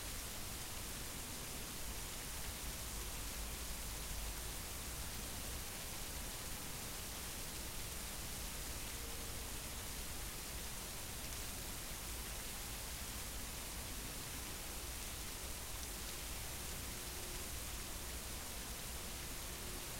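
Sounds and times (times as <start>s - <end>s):
rain: 0.0s - 19.9s.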